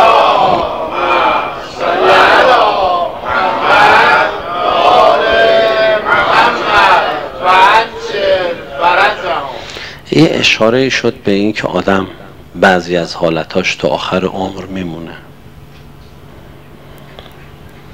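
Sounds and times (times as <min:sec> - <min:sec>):
audience chanting a salawat blessing in unison: 0:00.0 - 0:09.7
speech: 0:10.2 - 0:15.2.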